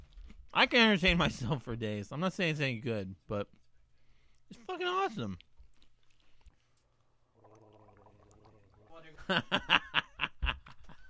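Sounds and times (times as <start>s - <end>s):
speech: 0.6s - 3.6s, 4.5s - 5.5s, 9.0s - 9.9s
slurping milk: 6.0s - 9.0s
snickering laughter: 9.2s - 11.0s.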